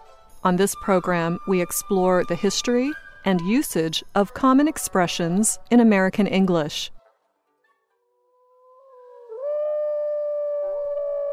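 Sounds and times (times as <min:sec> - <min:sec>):
speech: 0:00.4 - 0:07.0
wolf howling: 0:08.2 - 0:11.3.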